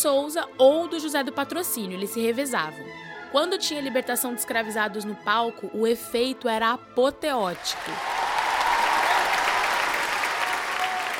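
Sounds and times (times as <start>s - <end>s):
speech: 0.0s - 8.2s
theater audience applauding: 7.6s - 11.1s.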